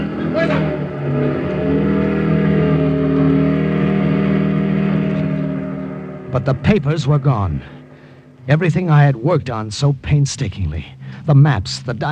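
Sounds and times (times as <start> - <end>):
motorcycle revving and driving off: 0.0 - 9.2
speech: 6.4 - 7.8, 8.5 - 12.1.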